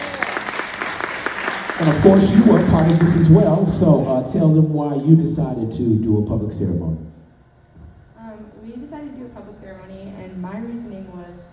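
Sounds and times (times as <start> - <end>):
audience clapping: 0.0 - 4.2
speech: 1.8 - 7.1.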